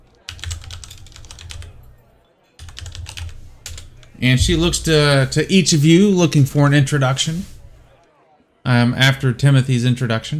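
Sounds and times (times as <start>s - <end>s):
typing on a computer keyboard: 0.2s - 1.9s, 2.6s - 4.1s
speech: 4.2s - 7.6s, 8.7s - 10.3s.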